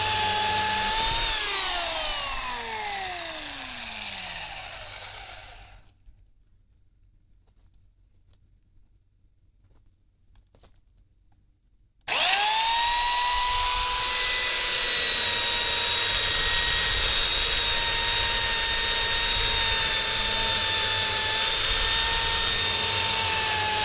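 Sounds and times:
chainsaw running: 0.0s - 5.9s, 12.1s - 23.8s.

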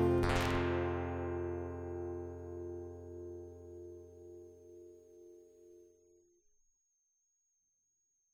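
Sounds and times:
guitar loop: 0.0s - 5.3s.

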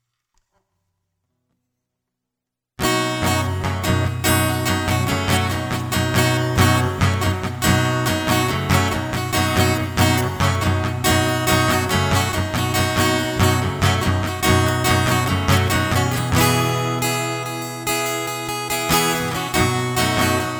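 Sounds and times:
guitar loop: 2.8s - 20.5s.

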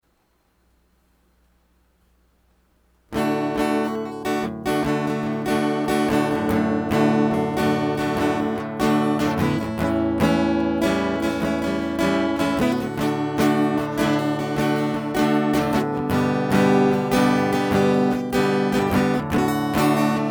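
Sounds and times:
guitar: 3.1s - 20.2s.

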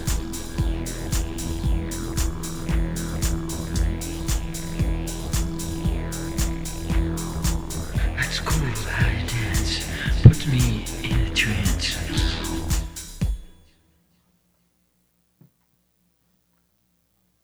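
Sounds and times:
soundcheck: 0.0s - 13.6s.

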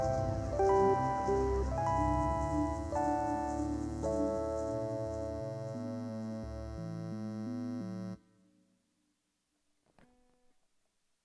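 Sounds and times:
instrumental music: 0.0s - 8.4s.

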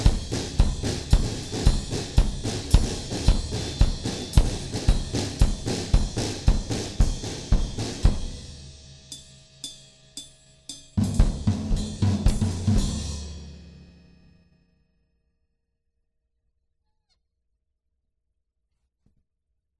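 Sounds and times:
drum interlude: 0.0s - 14.2s.

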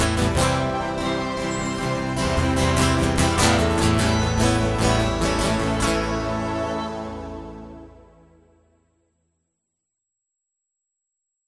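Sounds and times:
prelude: 0.0s - 8.8s.

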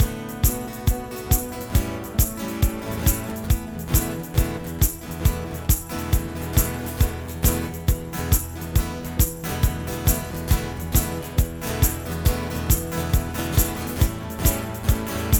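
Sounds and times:
rainy day instrumental music: 0.0s - 15.3s.

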